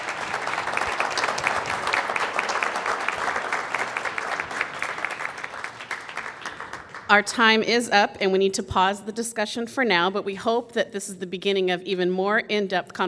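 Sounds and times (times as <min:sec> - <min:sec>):
audience applause for candidates: 0:00.0 - 0:07.2
speech: 0:07.1 - 0:13.0.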